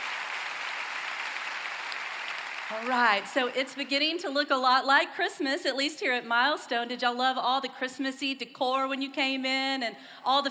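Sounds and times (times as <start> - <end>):
church congregation applauding at a Christmas service: 0.0 - 3.7
speech: 2.7 - 10.4.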